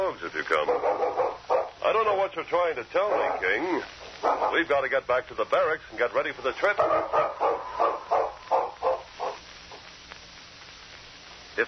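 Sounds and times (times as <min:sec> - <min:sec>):
speech: 0:00.1 - 0:01.0, 0:02.0 - 0:07.9
dog barking: 0:00.6 - 0:01.8, 0:03.0 - 0:03.6, 0:04.2 - 0:04.7, 0:06.8 - 0:09.8.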